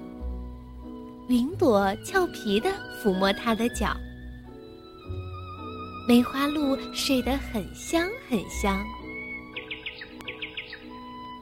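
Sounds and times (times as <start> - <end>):
speech: 1.3 - 4.1, 6.1 - 9.0
small birds chirping: 8.0 - 11.4.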